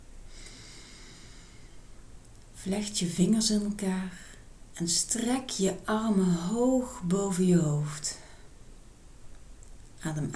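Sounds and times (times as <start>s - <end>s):
deep inhalation through the nose during a relaxation exercise: 0.3s - 2.0s
speech: 2.6s - 8.2s, 10.0s - 10.3s.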